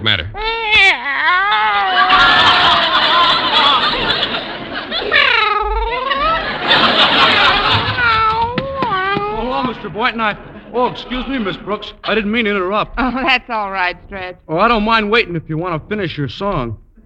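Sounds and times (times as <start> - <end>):
speech: 0.0 - 0.5, 10.0 - 17.0
noise: 0.0 - 17.0
cat meowing: 0.4 - 3.2, 5.1 - 6.4
laughter: 1.3 - 13.4.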